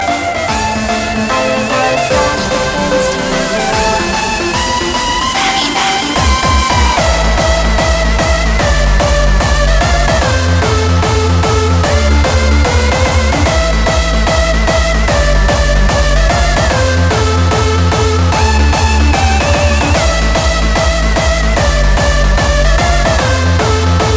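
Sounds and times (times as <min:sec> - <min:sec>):
hardstyle music: 0:00.0 - 0:24.1.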